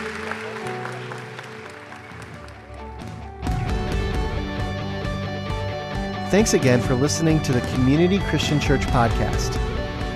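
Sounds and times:
audience clapping: 0:00.0 - 0:04.3, 0:06.4 - 0:09.8
sustained music: 0:00.0 - 0:10.1
speech: 0:06.3 - 0:09.6.

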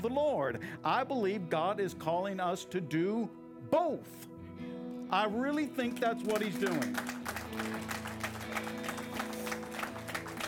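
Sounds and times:
speech: 0:00.0 - 0:07.8
audience applause in church: 0:06.2 - 0:10.4.

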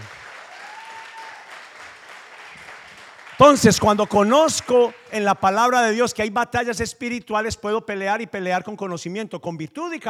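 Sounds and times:
crowd applauding: 0:00.0 - 0:06.1
speech: 0:03.4 - 0:10.0.

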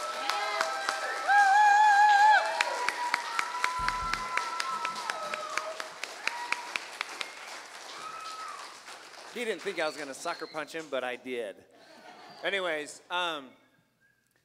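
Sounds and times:
audience round of applause: 0:00.0 - 0:10.5
speech: 0:09.4 - 0:11.8, 0:12.4 - 0:13.6.

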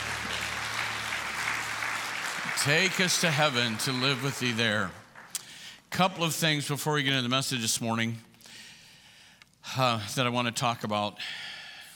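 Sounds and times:
church congregation clapping hands: 0:00.0 - 0:05.8
speech: 0:02.6 - 0:05.0, 0:05.9 - 0:08.3, 0:09.6 - 0:11.5.

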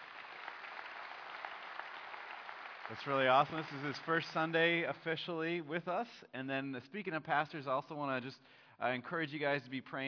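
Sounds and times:
audience applause for new pastor: 0:00.0 - 0:05.3
speech: 0:02.9 - 0:10.0.

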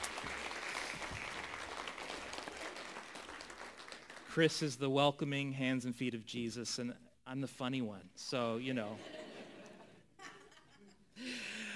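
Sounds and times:
faint audience clapping: 0:00.0 - 0:04.3
speech: 0:04.4 - 0:09.2.

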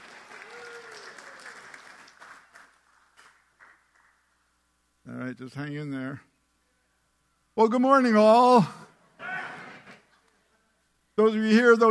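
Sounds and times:
audience applause: 0:00.0 - 0:04.2
speech: 0:05.1 - 0:06.3, 0:07.6 - 0:08.8, 0:11.2 - 0:11.9.

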